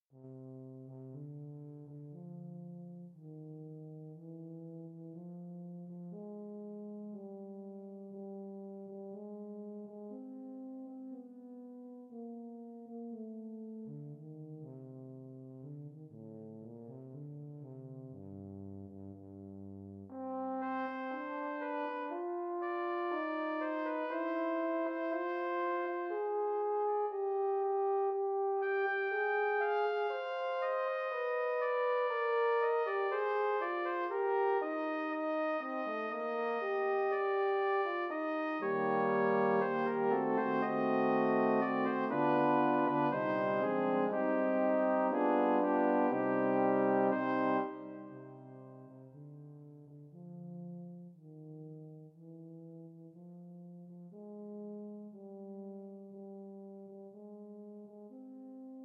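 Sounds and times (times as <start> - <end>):
requiem for four voices or instruments: 20.2 - 49.9.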